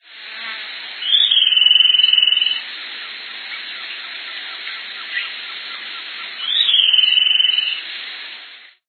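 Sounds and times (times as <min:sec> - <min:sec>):
steady hiss: 0:00.0 - 0:08.8
Ashy-headed greenlet song: 0:01.0 - 0:02.7, 0:03.5 - 0:07.9.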